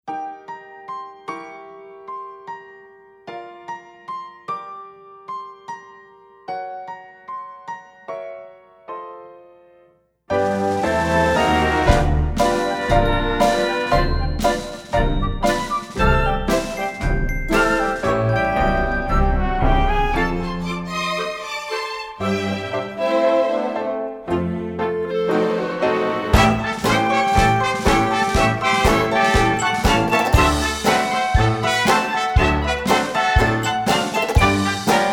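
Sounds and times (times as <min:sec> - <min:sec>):
ragtime opening music: 0:10.3 - 0:35.1.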